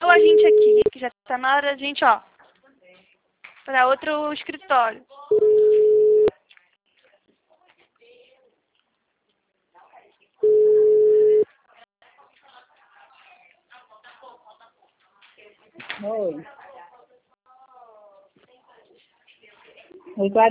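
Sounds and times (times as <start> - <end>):
telephone busy signal after a dropped call: 0.0 - 0.9, 5.3 - 6.3, 10.4 - 11.4
speech: 1.4 - 2.3, 3.7 - 5.6, 16.0 - 16.6, 20.2 - 20.4.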